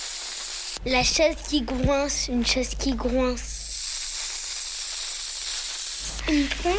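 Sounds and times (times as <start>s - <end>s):
hand pump inflating a balloon: 0.0s - 0.8s, 3.6s - 6.7s
speech: 0.8s - 3.6s, 6.3s - 6.7s.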